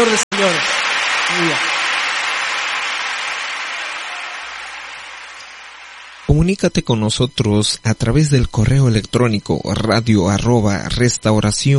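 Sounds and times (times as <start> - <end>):
speech: 0.0 - 1.7, 6.3 - 11.7
audience applause: 0.0 - 6.6.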